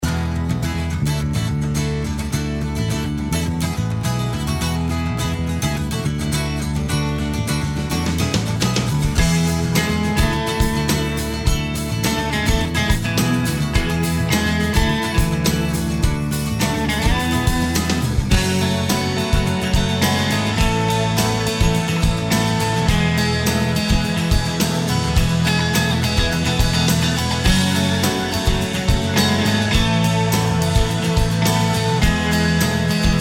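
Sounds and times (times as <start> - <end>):
guitar: 0.0 - 33.1.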